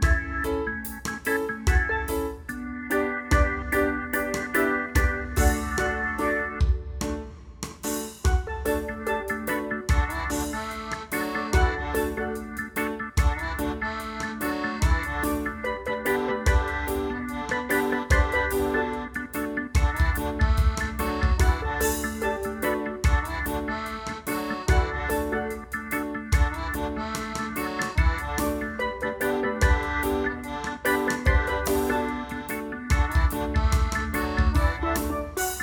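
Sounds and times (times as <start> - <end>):
reggae song without bass: 0.0 - 35.6.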